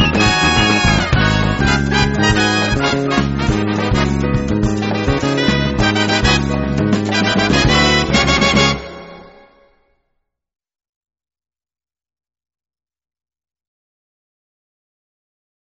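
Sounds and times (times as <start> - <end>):
Afro-Cuban credits music: 0.0 - 9.8.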